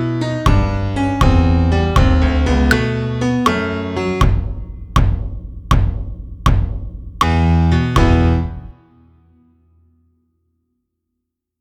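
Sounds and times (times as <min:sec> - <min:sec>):
piano: 0:00.0 - 0:10.0
bass drum: 0:00.5 - 0:02.9, 0:04.2 - 0:08.7.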